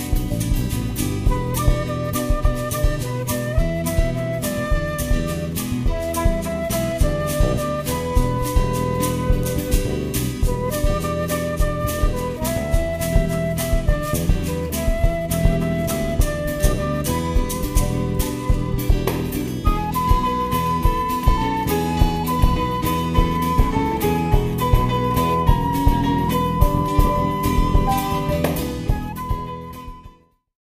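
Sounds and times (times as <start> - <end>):
viola: 0.1 - 30.2.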